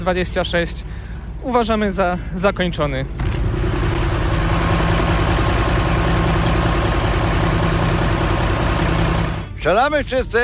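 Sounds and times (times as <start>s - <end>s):
speech: 0.0s - 3.4s, 9.6s - 10.4s
locomotive engine running: 3.1s - 9.8s.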